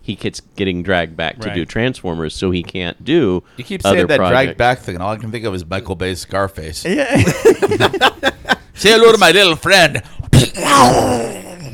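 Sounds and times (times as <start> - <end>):
speech: 0.1 - 11.4
laughter: 7.1 - 8.7
voice imitating an explosion: 10.3 - 11.7.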